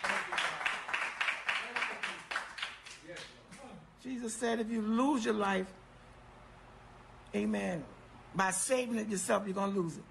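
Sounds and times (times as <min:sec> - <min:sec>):
audience clapping hands: 0:00.0 - 0:03.4
speech: 0:04.0 - 0:05.8, 0:07.3 - 0:10.0.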